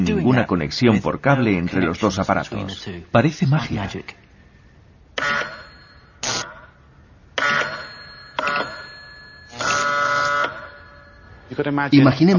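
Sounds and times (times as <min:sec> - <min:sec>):
speech: 0:00.2 - 0:04.2, 0:11.5 - 0:12.3
wirelessly triggered electric bell ringing: 0:05.2 - 0:06.7, 0:07.4 - 0:11.8.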